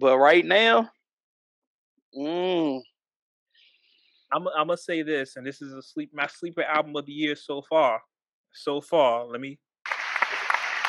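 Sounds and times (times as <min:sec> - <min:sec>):
speech: 0:00.0 - 0:01.0, 0:02.1 - 0:02.9, 0:04.3 - 0:09.6
applause: 0:09.9 - 0:10.8.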